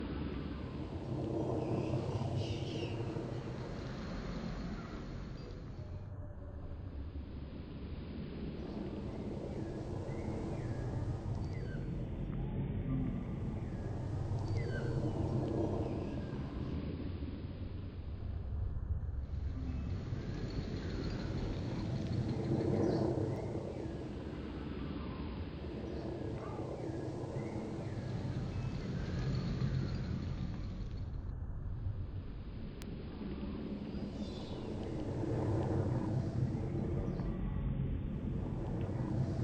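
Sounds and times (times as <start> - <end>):
ambient plane noise: 0.0 - 39.4.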